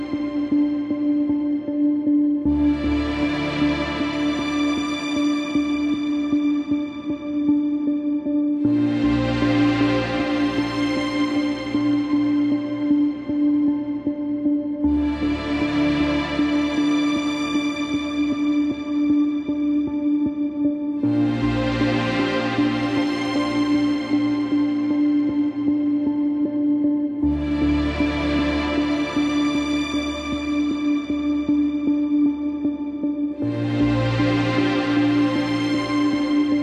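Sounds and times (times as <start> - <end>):
light serious documentary soundscape music: 0.0 - 36.6.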